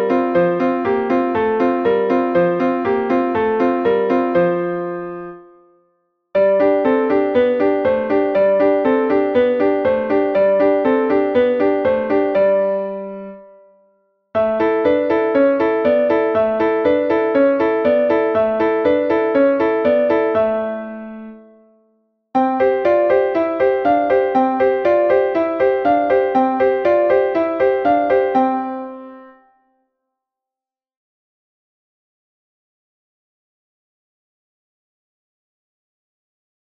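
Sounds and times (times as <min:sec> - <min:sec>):
piano warm-up exercises: 0:00.0 - 0:05.8, 0:06.4 - 0:21.8, 0:22.4 - 0:29.4.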